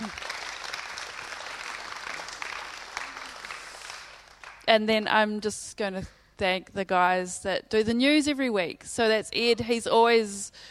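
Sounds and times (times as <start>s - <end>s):
audience applause: 0.0s - 4.6s
speech: 4.7s - 10.6s.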